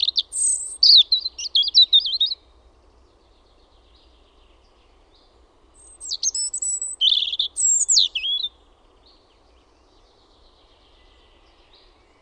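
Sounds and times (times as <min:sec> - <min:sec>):
birds: 0:00.0 - 0:12.1.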